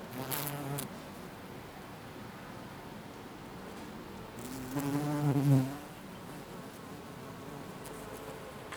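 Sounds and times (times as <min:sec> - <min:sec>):
bee buzzing: 0:00.1 - 0:00.9, 0:04.4 - 0:08.6.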